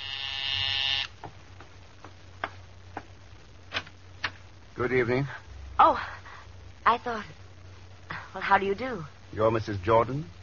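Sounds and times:
electric doorbell buzzing: 0.0 - 1.2
speech: 4.8 - 6.2, 6.9 - 7.4, 8.4 - 10.4.

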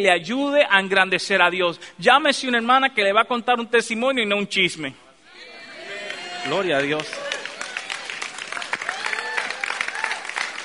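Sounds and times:
speech: 0.0 - 5.0, 6.4 - 7.2
audience applauding: 5.9 - 10.6.

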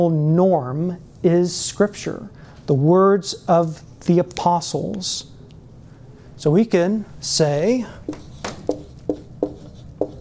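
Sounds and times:
speech: 0.0 - 5.3, 6.4 - 8.3
low hum: 0.0 - 10.1
scratchy writing strokes: 7.6 - 10.1.

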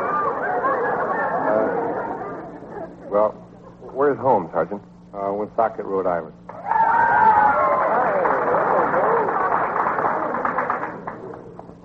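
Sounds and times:
audience screaming and shouting: 0.0 - 2.5, 6.5 - 9.5
laughter: 0.0 - 4.0, 7.6 - 11.7
speech: 3.1 - 6.4.

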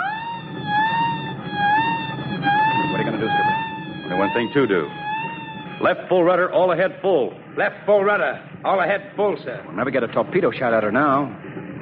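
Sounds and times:
submarine collision alarm blaring: 0.0 - 7.5
low rumbling: 0.0 - 11.7
speech: 4.4 - 5.0, 5.8 - 11.4.

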